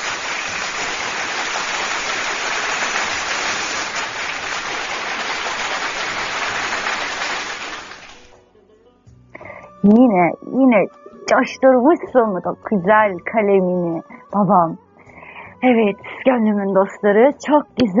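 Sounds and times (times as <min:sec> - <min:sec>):
applause: 0:00.0 - 0:08.4
speech: 0:09.8 - 0:14.9, 0:15.6 - 0:17.9.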